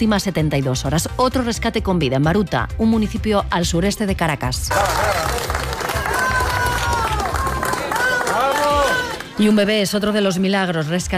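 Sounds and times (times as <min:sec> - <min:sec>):
speech: 0:00.0 - 0:05.5, 0:09.4 - 0:11.1
crowd applause for rescue workers in Baruta near Caracas: 0:04.7 - 0:09.4.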